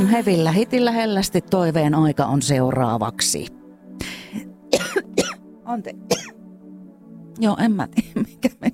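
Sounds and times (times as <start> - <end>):
speech: 0.1 - 3.6, 5.7 - 6.3, 7.4 - 8.7
person coughing to clear something from throat: 4.7 - 5.4, 6.1 - 6.4.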